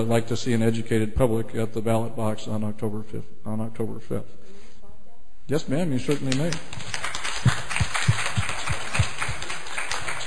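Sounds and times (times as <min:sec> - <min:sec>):
speech: 0:00.0 - 0:04.6, 0:05.5 - 0:07.6
spontaneous audience applause: 0:06.3 - 0:10.2.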